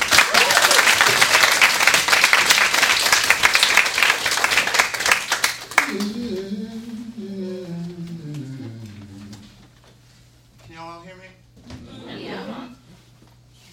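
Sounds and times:
audience clapping welcoming a performer onto the stage: 0:00.0 - 0:06.5.

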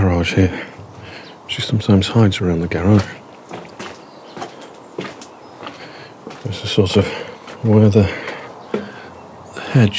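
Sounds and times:
speech: 0:00.2 - 0:00.8, 0:01.5 - 0:03.2, 0:06.7 - 0:08.2, 0:09.7 - 0:09.9
footsteps walking across a garden: 0:02.9 - 0:09.2.

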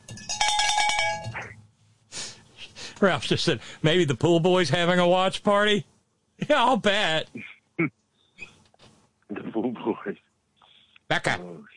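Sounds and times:
cowbell ringing: 0:00.0 - 0:01.4
speech: 0:03.0 - 0:08.0, 0:09.3 - 0:10.2, 0:11.1 - 0:11.7.

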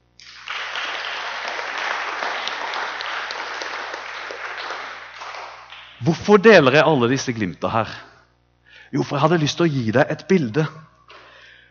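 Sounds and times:
audience applause: 0:00.2 - 0:06.4
speech: 0:06.0 - 0:08.1, 0:08.9 - 0:10.9.

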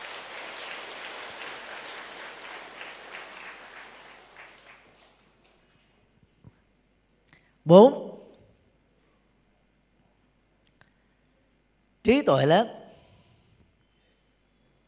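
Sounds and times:
audience applause: 0:00.0 - 0:06.0
speech: 0:07.6 - 0:08.1, 0:12.1 - 0:12.8.

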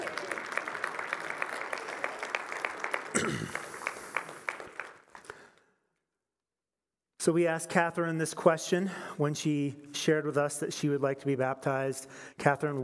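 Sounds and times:
audience applauding: 0:00.0 - 0:05.6
speech: 0:07.2 - 0:12.8.

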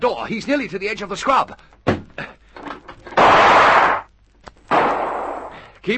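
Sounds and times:
speech: 0:00.0 - 0:02.3
gunshots fired through a window: 0:03.2 - 0:04.1, 0:04.7 - 0:05.6.

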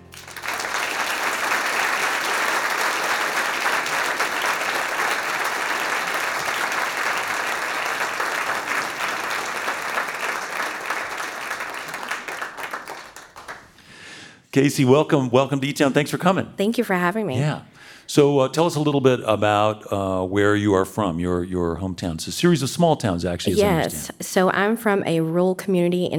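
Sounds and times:
audience applause at a live music and talk show: 0:00.0 - 0:13.8
speech: 0:14.6 - 0:26.1.

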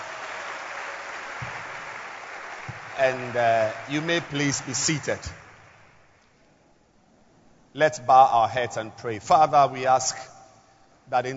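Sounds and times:
audience clapping: 0:00.0 - 0:06.2
speech: 0:03.0 - 0:05.4, 0:07.8 - 0:10.3, 0:11.1 - 0:11.3.

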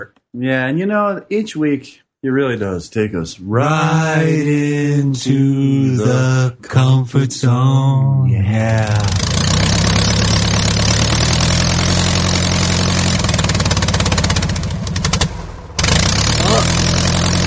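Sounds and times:
speech: 0:00.0 - 0:09.3
small engine starting and idling: 0:08.6 - 0:17.4.

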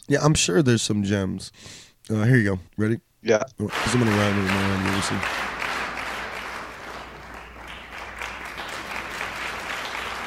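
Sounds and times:
speech: 0:00.1 - 0:05.5
clapping: 0:03.7 - 0:10.2.

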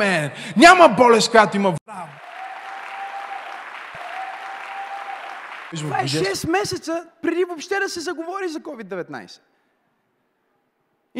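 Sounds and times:
speech: 0:00.0 - 0:01.8, 0:05.7 - 0:09.5
audience applause: 0:01.9 - 0:06.8.

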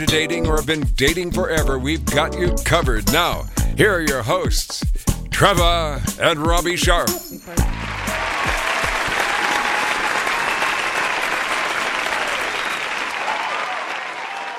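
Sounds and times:
speech: 0:00.0 - 0:07.9
lively studio audience applauding at a dating show taping: 0:07.6 - 0:14.5.

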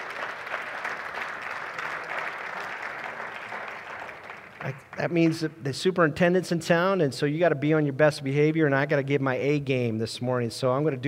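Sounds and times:
crowd applause: 0:00.0 - 0:05.4
speech: 0:04.6 - 0:11.0.

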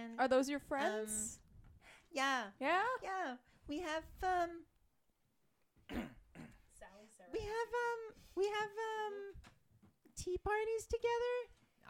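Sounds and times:
speech: 0:00.2 - 0:01.4, 0:02.1 - 0:04.7, 0:05.9 - 0:06.2, 0:06.8 - 0:09.6, 0:10.2 - 0:11.8
young girl clearing phlegm from her throat: 0:05.9 - 0:06.8.

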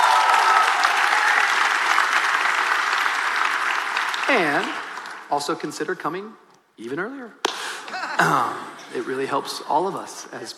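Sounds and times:
audience applauding the host team: 0:00.0 - 0:05.3
speech: 0:04.3 - 0:07.4, 0:08.2 - 0:10.5
laughter: 0:07.6 - 0:09.2.

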